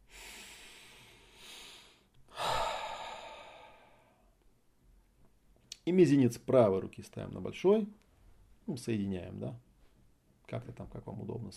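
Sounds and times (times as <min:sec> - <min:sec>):
deep breath in and out during a guided breathing exercise: 0:00.0 - 0:04.4
speech: 0:05.9 - 0:08.0, 0:08.7 - 0:09.7, 0:10.5 - 0:11.5.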